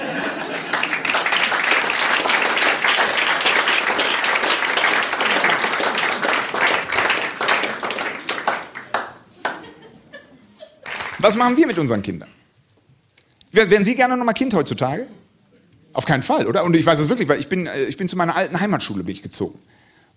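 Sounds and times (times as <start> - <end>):
laughter: 0.0 - 1.4, 9.3 - 11.0
audience applause: 0.0 - 9.9, 10.8 - 11.7
speech: 11.2 - 12.4, 13.5 - 15.2, 15.9 - 19.7.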